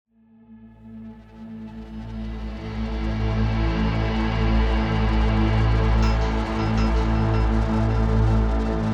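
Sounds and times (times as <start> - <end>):
tense music: 2.0 - 8.9.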